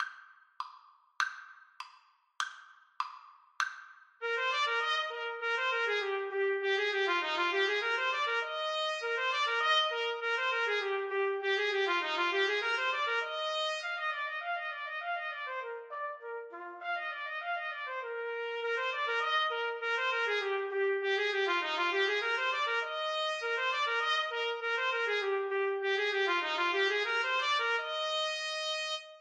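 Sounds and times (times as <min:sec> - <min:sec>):
trumpet duet: 0:04.2 - 0:29.1.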